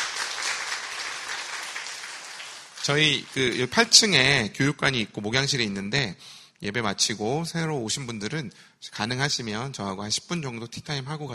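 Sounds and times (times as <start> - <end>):
church congregation clapping to welcome newcomers: 0.0 - 4.3
speech: 2.8 - 11.3.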